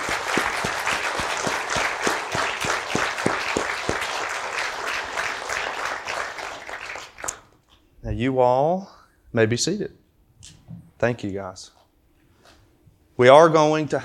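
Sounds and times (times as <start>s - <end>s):
audience applause: 0.0s - 7.5s
speech: 8.2s - 11.8s, 13.2s - 14.0s.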